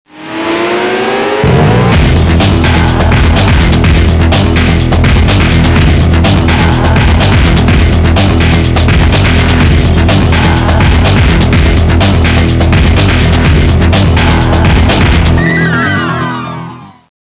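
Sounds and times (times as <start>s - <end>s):
electronica music: 0.1s - 17.1s.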